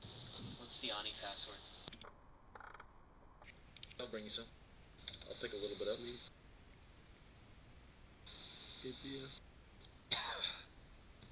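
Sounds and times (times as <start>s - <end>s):
speech: 0.8s - 1.8s, 4.0s - 4.6s, 5.3s - 6.4s, 8.8s - 9.4s
cough: 10.1s - 10.7s.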